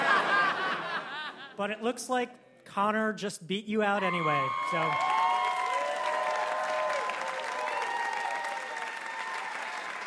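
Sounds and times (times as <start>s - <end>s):
laughter: 0.0s - 1.6s
speech: 1.6s - 5.1s
faint whoops and cheers from the audience: 4.0s - 10.0s
audience applause: 4.2s - 10.0s.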